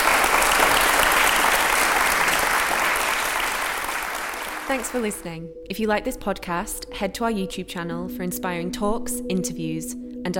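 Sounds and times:
warm audience applause: 0.0s - 5.2s
speech: 4.7s - 10.3s.

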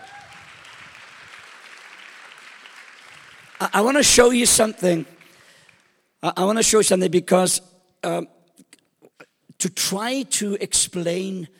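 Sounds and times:
crowd clapping: 0.0s - 6.1s
speech: 3.6s - 5.2s, 6.2s - 8.4s, 9.6s - 11.5s.

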